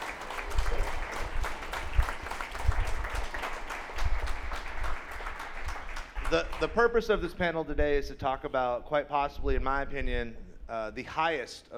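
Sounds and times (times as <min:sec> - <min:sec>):
audience applause: 0:00.0 - 0:06.8
speech: 0:06.3 - 0:11.7.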